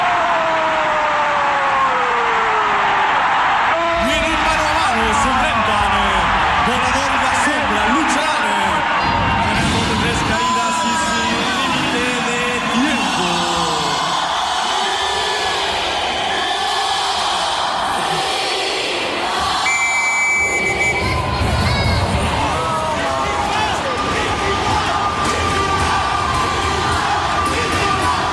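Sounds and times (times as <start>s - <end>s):
stadium crowd cheering after a goal: 0.0s - 28.3s
whistles: 19.6s - 21.2s.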